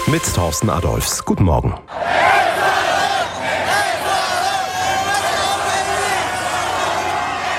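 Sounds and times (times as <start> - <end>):
speech: 0.1 - 2.2
Ecuador football fans in East Rutherford shouting and chanting: 1.9 - 7.5.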